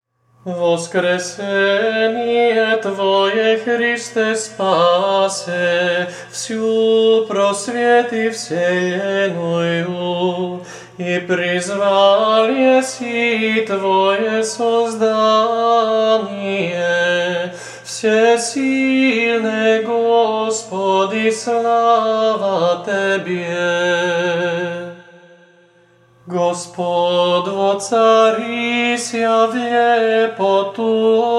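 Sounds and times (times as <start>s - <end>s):
Serbian chant second voice: 0.4s - 31.3s.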